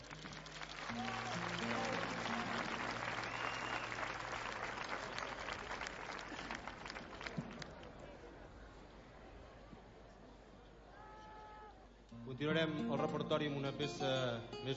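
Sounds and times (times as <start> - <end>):
audience applause: 0.0 - 8.0
speech: 12.4 - 14.7.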